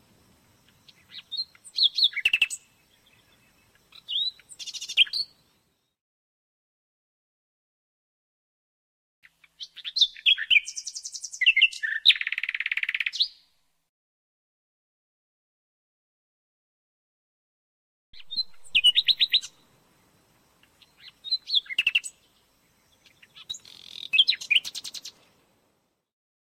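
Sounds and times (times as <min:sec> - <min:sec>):
nightingale singing: 0:00.4 - 0:06.0, 0:09.2 - 0:13.6, 0:18.2 - 0:25.4.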